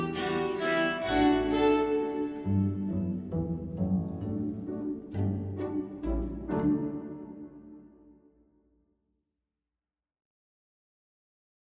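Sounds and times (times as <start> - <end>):
elegant string waltz: 0.0 - 8.3.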